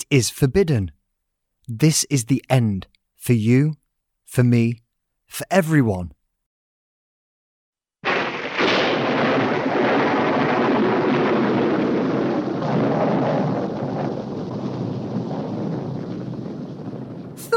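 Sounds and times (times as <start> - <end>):
speech: 0.1 - 1.0, 1.7 - 6.2
lightning strike: 8.0 - 17.5
thunder: 8.0 - 17.5.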